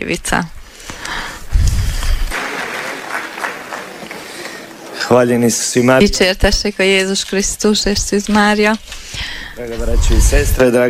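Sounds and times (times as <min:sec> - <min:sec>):
speech: 0:00.0 - 0:00.6, 0:05.1 - 0:10.8
audience clapping: 0:02.0 - 0:05.3
low rumble: 0:09.7 - 0:10.6.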